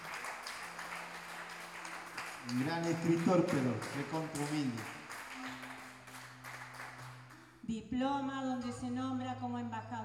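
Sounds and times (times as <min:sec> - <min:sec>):
audience applause: 0:00.0 - 0:07.4
speech: 0:02.4 - 0:05.0, 0:07.7 - 0:10.0.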